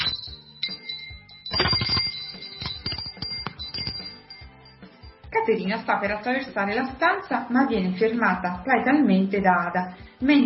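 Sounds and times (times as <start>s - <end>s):
doorbell ringing: 0.0s - 5.3s
speech: 5.5s - 10.4s.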